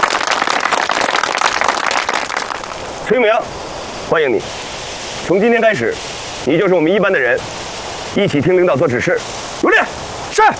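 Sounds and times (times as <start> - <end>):
group clapping: 0.0 - 2.8
speech: 3.1 - 7.6, 8.2 - 10.5.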